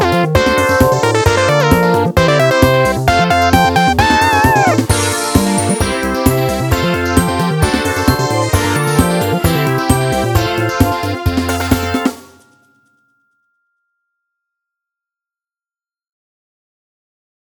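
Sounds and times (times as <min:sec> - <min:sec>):
fun game background music: 0:00.0 - 0:12.5.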